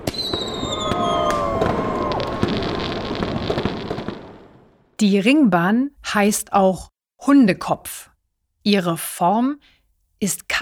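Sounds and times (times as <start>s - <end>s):
whistling rockets: 0.0s - 4.9s
fireworks crackling and popping over a city: 0.0s - 5.0s
speech: 5.0s - 10.5s.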